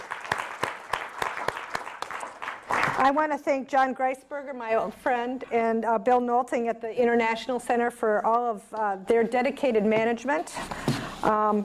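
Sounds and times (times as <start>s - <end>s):
audience clapping: 0.0s - 3.2s
speech: 3.0s - 11.6s.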